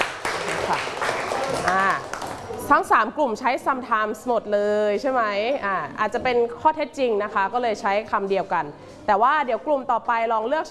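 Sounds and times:
classroom students clapping for a classmate: 0.0 - 2.7
speech: 0.5 - 2.1, 2.7 - 10.6.

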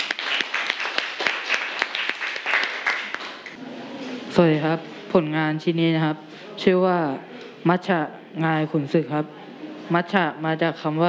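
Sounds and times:
audience applause: 0.0 - 3.6
speech: 4.4 - 11.0.

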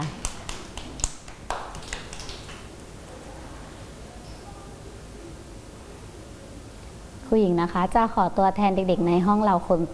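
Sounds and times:
children clapping: 0.2 - 2.7
speech: 7.3 - 9.9.

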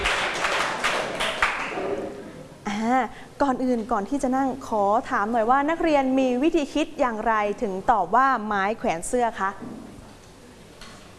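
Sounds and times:
classroom clapping for a student: 0.0 - 2.2
speech: 3.0 - 9.8.

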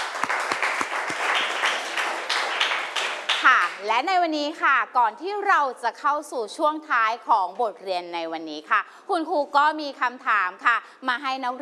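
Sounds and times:
students applauding: 0.0 - 3.8
speech: 3.4 - 11.6.

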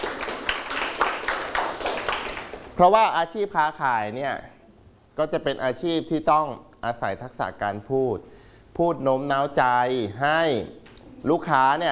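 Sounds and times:
students clapping for a classmate in class: 0.0 - 2.8
speech: 2.8 - 4.5, 5.2 - 11.9.

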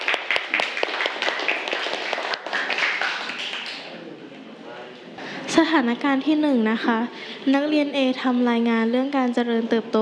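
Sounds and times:
classroom clapping for classmates: 0.0 - 4.0
speech: 5.6 - 9.9.

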